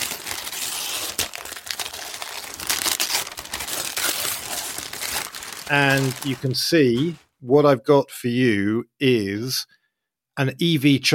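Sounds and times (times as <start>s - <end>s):
wrapping paper crinkling as a gift is unwrapped: 0.0s - 7.2s
speech: 5.7s - 9.8s, 10.4s - 11.1s.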